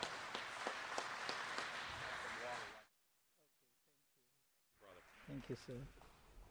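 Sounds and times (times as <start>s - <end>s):
audience applause: 0.0s - 2.9s
speech: 5.3s - 6.0s.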